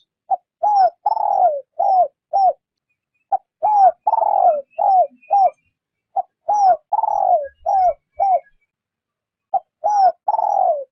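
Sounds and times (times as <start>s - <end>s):
spotted dove cooing: 0.3s - 2.6s, 3.3s - 8.6s, 9.5s - 10.9s.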